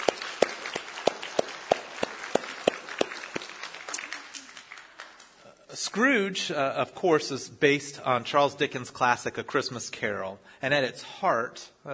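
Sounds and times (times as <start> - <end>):
audience applause: 0.0 - 5.4
speech: 5.8 - 11.9.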